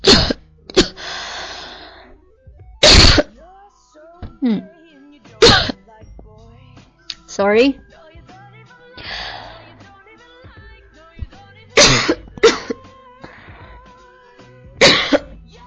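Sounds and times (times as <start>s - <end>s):
coughing after choking on saliva: 0.0s - 1.1s, 2.8s - 3.3s, 5.4s - 5.8s, 11.8s - 12.8s, 14.8s - 15.4s
speech: 4.4s - 4.8s, 7.4s - 8.0s.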